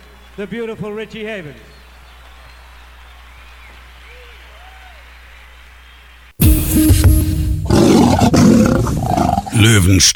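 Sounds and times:
speech: 0.4 - 1.8, 9.6 - 10.1
lion roaring: 7.5 - 9.7.

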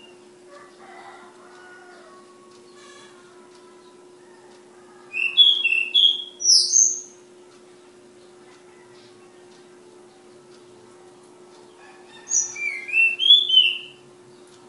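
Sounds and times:
steady hum: 0.0 - 14.6
flowerpecker singing: 5.1 - 7.1, 12.3 - 14.0.

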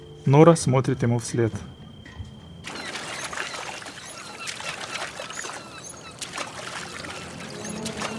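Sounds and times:
speech: 0.3 - 1.8
rowboat oars splashing on calm sea: 2.6 - 8.1.

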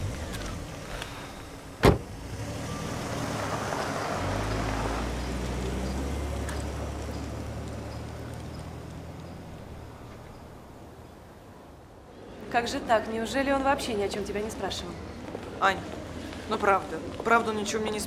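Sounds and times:
car driving away: 0.0 - 11.0
speech: 12.5 - 18.0.

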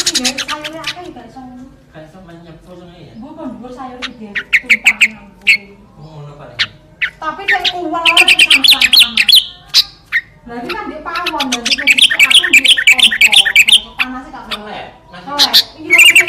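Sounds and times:
sooty-headed bulbul song: 0.0 - 1.0, 3.7 - 5.9, 6.6 - 16.2.

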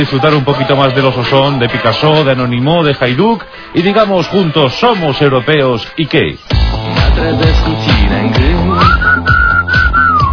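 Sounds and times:
speech: 0.0 - 9.4
busy rhythmic music backing: 0.0 - 10.3
person whistling a short wavering melody: 8.5 - 10.3.

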